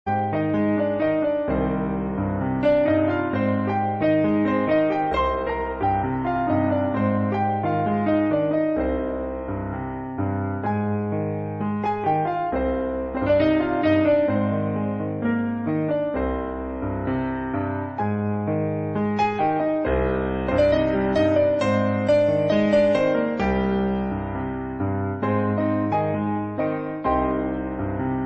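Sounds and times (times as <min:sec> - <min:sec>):
piano playing: 0:00.0 - 0:28.2.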